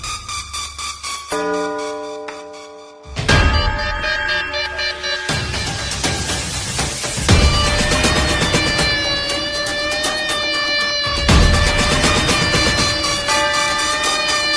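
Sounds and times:
attitude ringtone: 0.7 - 14.5.

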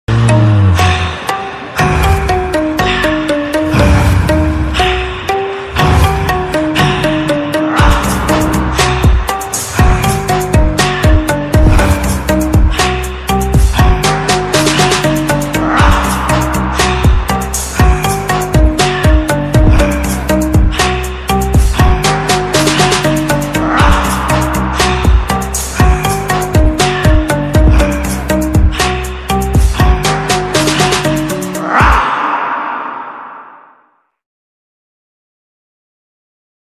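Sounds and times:
title background music ringtone: 0.1 - 32.0.

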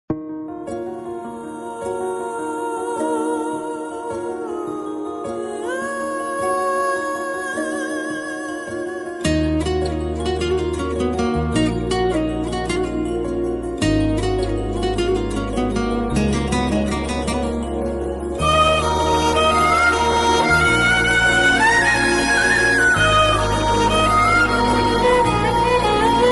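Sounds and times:
romantic Telugu movie background music ringtone: 0.1 - 26.3.

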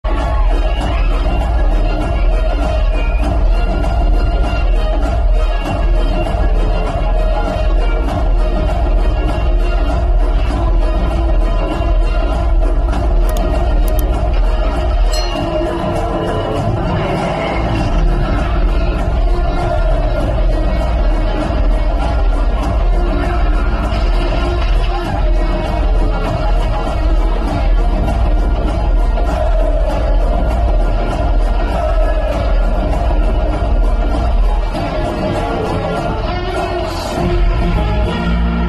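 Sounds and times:
entry background music: 0.1 - 38.6.

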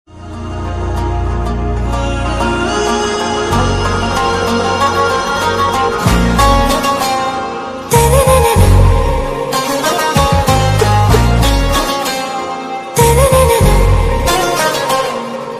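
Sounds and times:
Telugu background music ringtone: 0.2 - 15.5.

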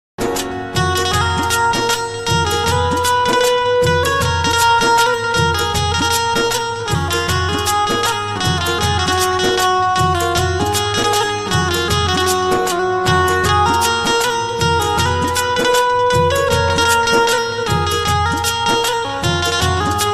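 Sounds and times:
instrumental phone ringtone music: 0.2 - 20.1.

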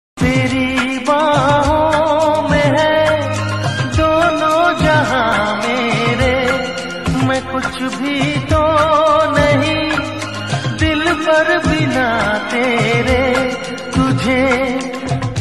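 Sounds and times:
old romantic song: 0.2 - 15.3.

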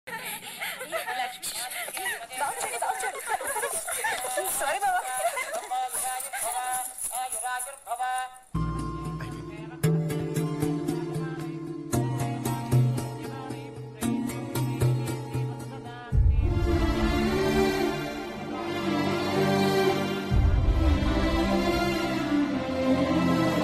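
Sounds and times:
laughter: 0.1 - 6.9
emotional background music: 8.6 - 23.6.

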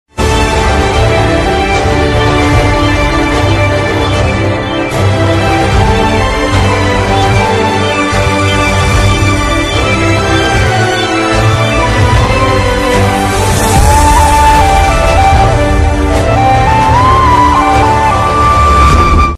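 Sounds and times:
love background music ringtone: 0.2 - 19.3.

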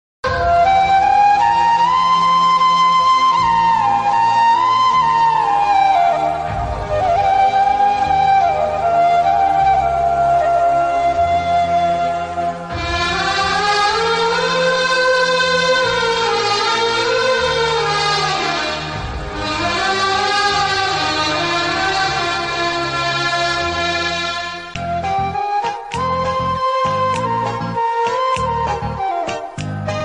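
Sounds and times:
emotional love background music ringtone: 0.3 - 30.0.

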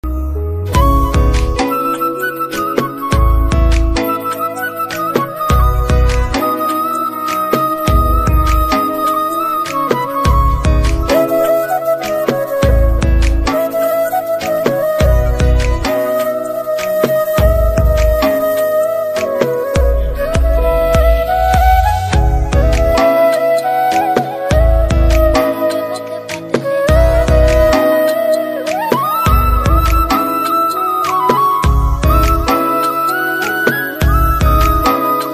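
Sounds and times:
flute cover ringtone: 0.0 - 35.3.

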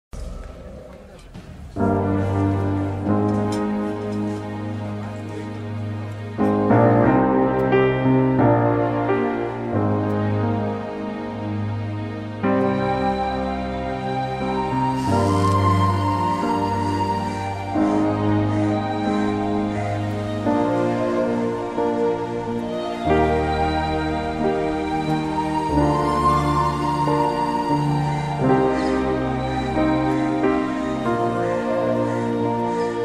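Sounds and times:
Tamil sad background music: 0.2 - 33.0.

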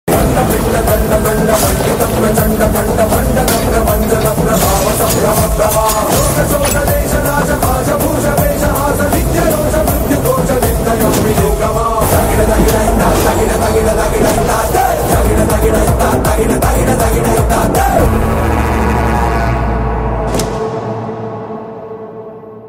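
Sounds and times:
Telugu movie background music: 0.1 - 22.6.

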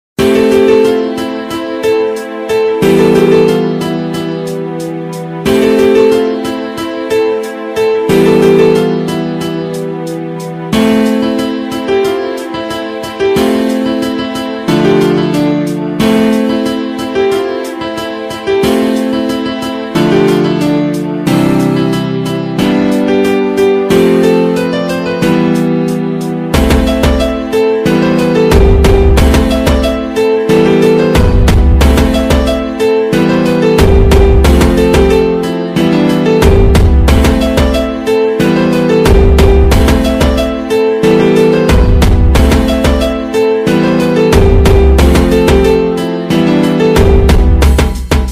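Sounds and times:
Telugu instrumental background music ringtone: 0.2 - 48.2.

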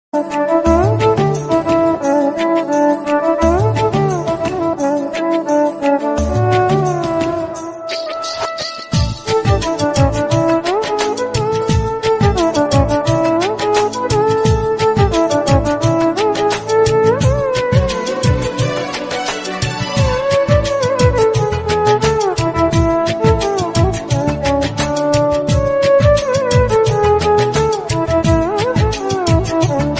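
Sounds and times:
romantic instrumental background music ringtone: 0.2 - 29.9.

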